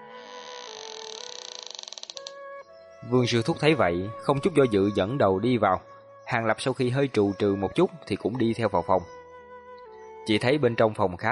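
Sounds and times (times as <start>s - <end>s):
door creaking open by itself: 0.0s - 2.4s
speech: 3.0s - 9.2s, 10.3s - 11.2s.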